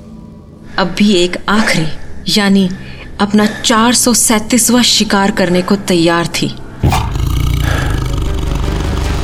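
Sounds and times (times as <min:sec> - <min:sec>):
speech: 0:00.8 - 0:07.0
wounded tigress growling: 0:06.8 - 0:09.0.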